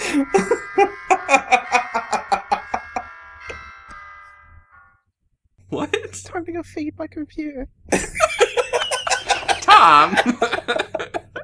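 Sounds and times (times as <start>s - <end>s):
laughter: 0.0s - 3.1s, 7.9s - 11.4s
morning bell buzzing: 0.0s - 5.1s
speech: 0.1s - 0.9s, 6.6s - 8.2s, 9.8s - 10.8s.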